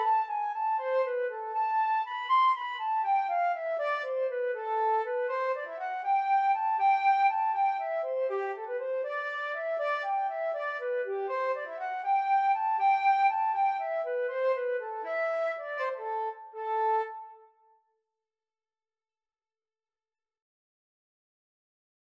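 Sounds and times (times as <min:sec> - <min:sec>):
two flutes playing karaoke backing: 0:00.0 - 0:17.5.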